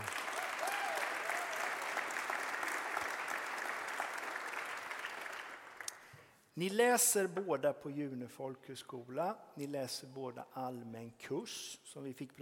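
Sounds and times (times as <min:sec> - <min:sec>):
warm applause from audience: 0:00.0 - 0:06.0
speech: 0:06.6 - 0:12.4.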